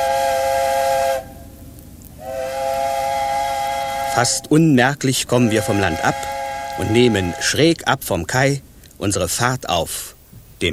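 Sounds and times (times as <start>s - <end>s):
ship's sirens howling at departure: 0.0s - 1.6s, 2.2s - 4.6s, 5.3s - 7.6s
speech: 4.2s - 10.7s.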